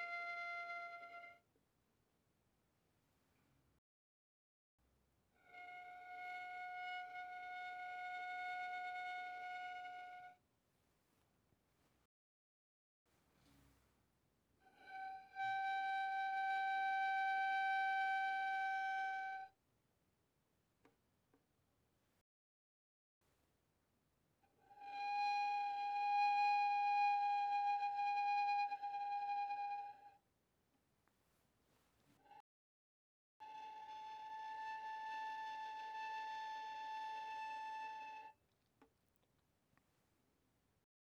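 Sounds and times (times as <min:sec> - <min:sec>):
violin bowed pianissimo on the D string: 0:00.0 - 0:01.4, 0:05.4 - 0:10.4, 0:14.6 - 0:19.5, 0:24.6 - 0:30.2, 0:33.4 - 0:38.4.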